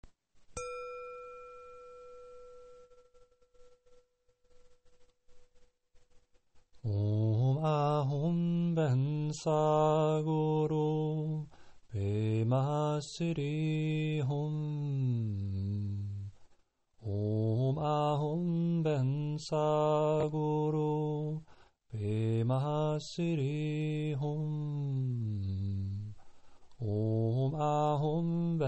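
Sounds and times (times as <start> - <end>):
mantra chanting: 6.9 - 16.3, 17.0 - 21.4, 22.0 - 26.2, 26.8 - 28.6.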